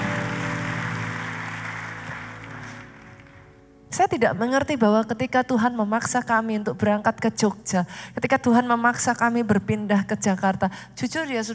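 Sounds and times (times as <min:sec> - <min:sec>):
people clapping: 0:00.0 - 0:03.6
speech: 0:04.0 - 0:11.5.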